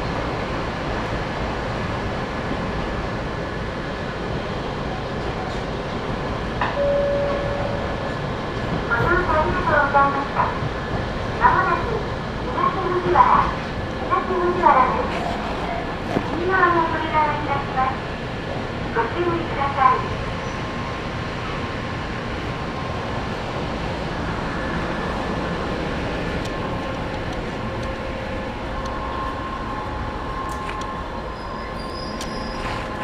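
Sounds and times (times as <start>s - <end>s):
Sangi Line train carriages rumbling: 0.0s - 33.0s.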